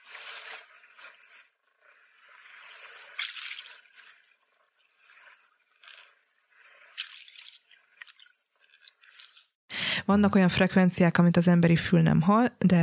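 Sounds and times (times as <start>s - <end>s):
dolphin whistles underwater: 0.0s - 9.2s
speech: 10.1s - 12.8s.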